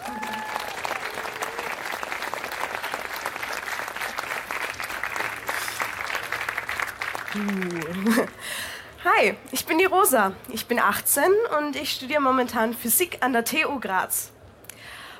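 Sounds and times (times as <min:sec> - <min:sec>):
audience applause: 0:00.0 - 0:08.6
speech: 0:07.3 - 0:14.4.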